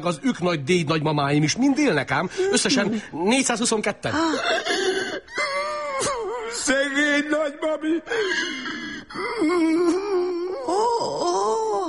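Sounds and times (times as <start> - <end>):
speech: 0.0 - 5.0, 6.6 - 10.2
man crying, wailing and sobbing: 4.0 - 11.8.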